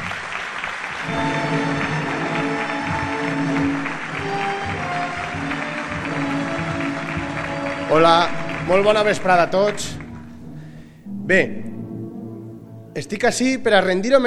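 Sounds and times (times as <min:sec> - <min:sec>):
audience applause: 0:00.0 - 0:10.4
speech: 0:07.9 - 0:10.0, 0:11.3 - 0:11.6, 0:13.0 - 0:14.2.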